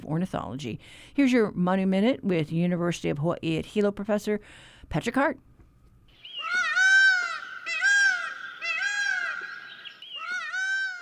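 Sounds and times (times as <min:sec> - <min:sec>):
speech: 0:00.1 - 0:05.5
Indian peafowl peacock call: 0:06.2 - 0:10.9.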